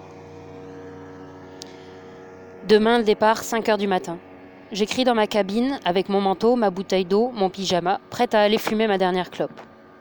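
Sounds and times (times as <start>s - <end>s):
small boat motor droning: 0.0s - 9.9s
speech: 2.6s - 9.7s.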